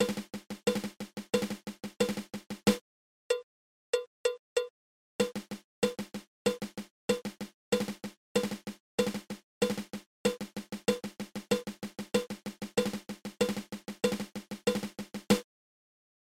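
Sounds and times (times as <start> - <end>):
single dragadiddle snare drum rudiment: 0.0 - 2.8, 5.2 - 15.4.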